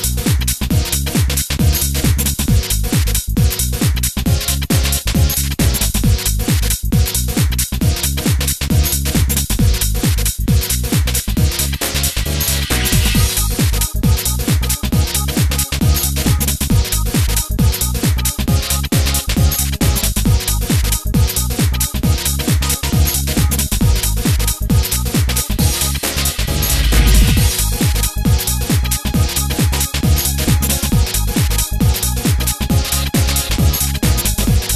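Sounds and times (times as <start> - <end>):
Korg Triton synthesizer: 0.0 - 34.7.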